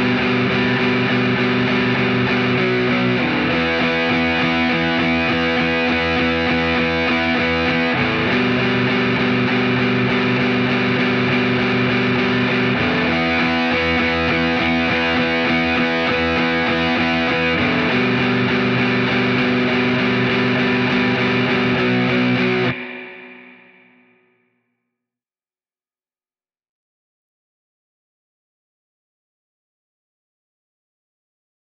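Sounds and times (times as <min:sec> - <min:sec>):
guitar: 0:00.0 - 0:24.7.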